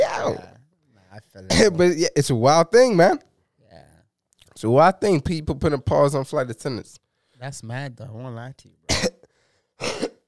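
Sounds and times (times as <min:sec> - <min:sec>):
sneeze: 0:00.0 - 0:00.4
speech: 0:01.4 - 0:03.3, 0:04.6 - 0:09.2, 0:09.8 - 0:10.1.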